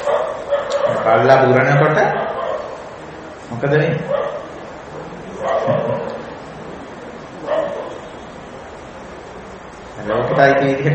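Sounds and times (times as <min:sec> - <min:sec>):
dog barking: 0:00.0 - 0:01.1, 0:02.2 - 0:02.9, 0:04.1 - 0:04.6, 0:05.4 - 0:06.2, 0:07.4 - 0:08.1
quiet steady hiss: 0:00.0 - 0:10.9
speech: 0:01.1 - 0:02.2, 0:03.5 - 0:04.2, 0:10.0 - 0:10.9.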